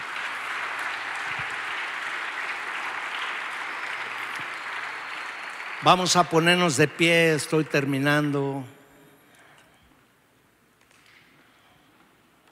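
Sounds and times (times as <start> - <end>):
audience applause: 0.0 - 8.7
speech: 5.8 - 8.8.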